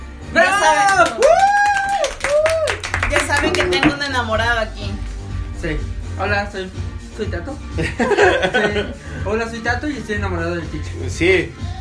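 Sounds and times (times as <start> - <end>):
applause: 0.8 - 4.2
speech: 4.2 - 4.9, 5.6 - 11.7
laughter: 7.8 - 9.2.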